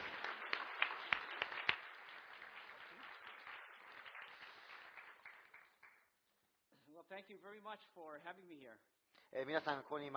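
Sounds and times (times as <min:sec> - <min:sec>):
audience applause welcoming speaker: 0:00.0 - 0:06.1
speech: 0:07.1 - 0:10.1.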